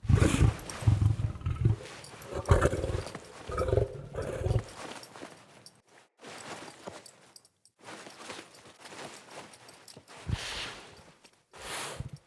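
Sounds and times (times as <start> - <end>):
wolf vocalizing while lying down and being petted: 0.0 - 4.9.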